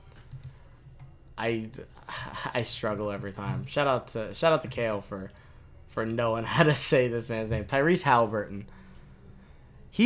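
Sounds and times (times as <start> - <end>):
computer keyboard typing and mouse clicking: 0.0 - 1.1
speech: 1.4 - 8.8.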